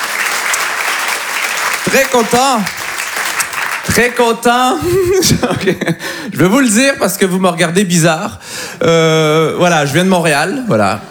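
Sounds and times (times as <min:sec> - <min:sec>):
audience applause: 0:00.0 - 0:04.4
speech: 0:01.9 - 0:02.8, 0:03.9 - 0:11.0
laughter: 0:03.6 - 0:06.4.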